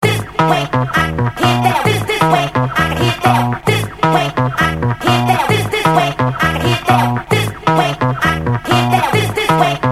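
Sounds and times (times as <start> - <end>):
music mix: 0.0 - 9.8.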